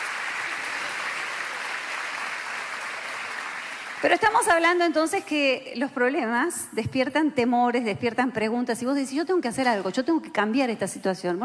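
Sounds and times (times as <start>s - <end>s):
crowd clapping: 0.0s - 5.2s
speech: 4.0s - 11.4s.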